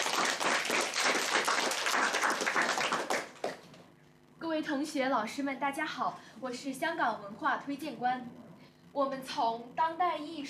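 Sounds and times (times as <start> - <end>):
audience applause: 0.0 - 3.7
speech: 4.6 - 8.4, 9.0 - 10.4.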